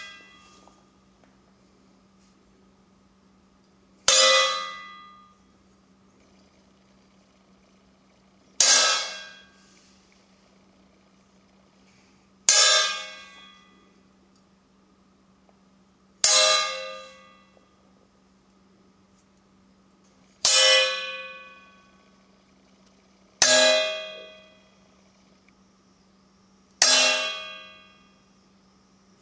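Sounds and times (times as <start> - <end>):
metal file hitting a trowel: 4.1 - 4.9, 8.6 - 9.5, 12.5 - 13.5, 16.3 - 17.3, 20.5 - 21.5, 26.8 - 27.8.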